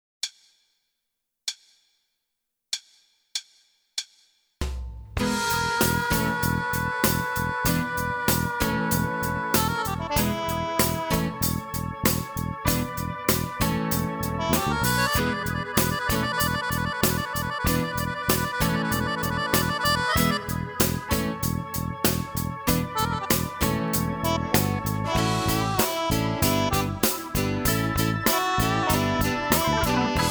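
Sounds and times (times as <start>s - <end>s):
rock drum pattern in eighth notes: 4.6s - 30.2s.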